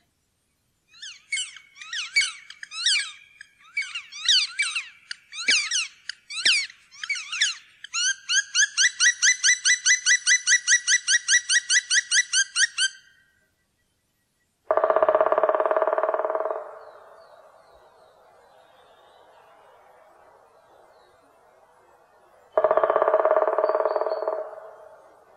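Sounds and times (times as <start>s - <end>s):
black woodpecker: 1.0s - 13.0s, 14.7s - 18.0s, 22.5s - 25.3s.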